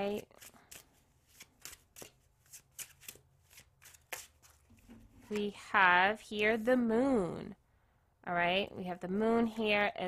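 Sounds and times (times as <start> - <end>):
speech: 0.0 - 0.6, 5.3 - 7.6, 8.2 - 10.0
Literary Witches Oracle card deck being shuffled: 0.3 - 5.5.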